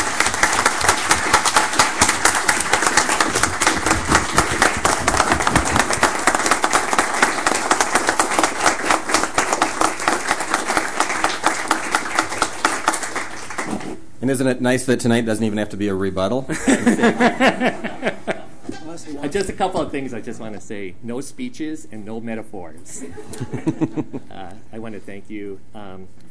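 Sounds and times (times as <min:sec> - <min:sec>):
applause: 0:00.0 - 0:14.0
speech: 0:14.3 - 0:18.2, 0:18.9 - 0:26.2
laughter: 0:16.5 - 0:18.6, 0:22.9 - 0:24.3.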